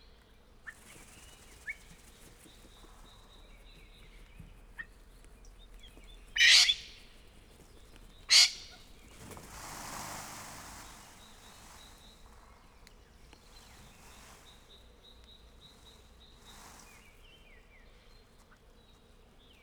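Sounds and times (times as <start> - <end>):
golden pheasant in a zoo: 0.6 - 18.6
peacock rattling its feathers in a zoo: 0.7 - 17.2
pheasant crowing in a zoo: 6.3 - 7.1, 8.2 - 12.0.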